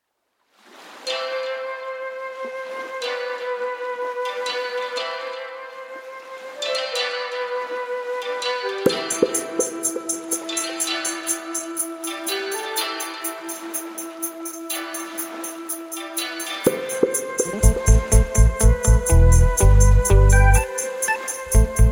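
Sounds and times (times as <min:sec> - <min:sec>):
dub music: 0:08.9 - 0:21.9.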